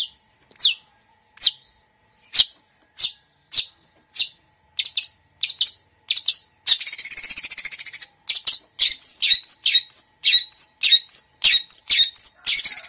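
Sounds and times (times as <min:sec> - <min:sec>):
female long-tailed shrike singing vigorously: 0:00.0 - 0:12.8.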